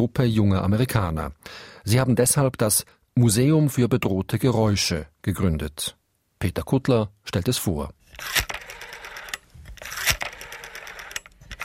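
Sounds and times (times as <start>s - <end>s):
speech: 0.0s - 8.5s
rotary telephone dial turning and whirring back: 8.1s - 11.6s.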